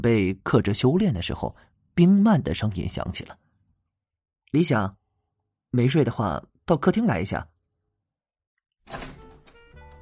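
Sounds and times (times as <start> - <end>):
speech: 0.0 - 3.4, 4.5 - 5.0, 5.7 - 7.5, 8.9 - 9.1
door pulled open with a scraping rumbling slide: 8.9 - 10.0.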